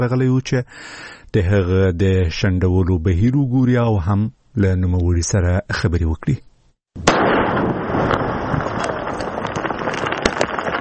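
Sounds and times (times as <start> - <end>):
speech: 0.0 - 7.1
defused landmines detonated in Maiwand district, Kandahar: 7.0 - 10.7.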